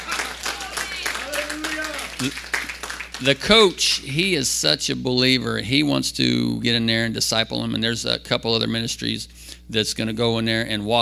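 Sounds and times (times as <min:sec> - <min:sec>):
audience clapping: 0:00.0 - 0:03.8
speech: 0:02.2 - 0:02.6, 0:03.2 - 0:11.0.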